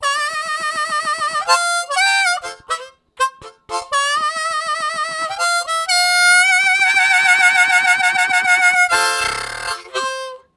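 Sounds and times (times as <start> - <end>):
harmonica riffs with mid vibrato and roll: 0.0 - 10.5.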